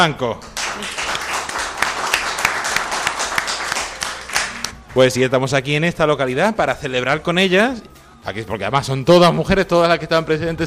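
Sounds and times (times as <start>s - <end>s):
speech: 0.0s - 1.1s, 5.0s - 10.6s
small audience applauding: 0.4s - 4.7s.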